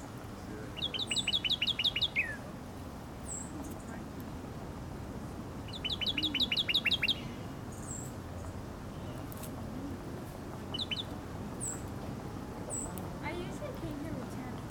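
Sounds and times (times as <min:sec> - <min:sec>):
male bird chirping trills: 0:00.0 - 0:02.4, 0:03.2 - 0:04.0, 0:05.6 - 0:09.4, 0:10.6 - 0:12.0, 0:12.6 - 0:13.8
low hiss: 0:00.0 - 0:14.6.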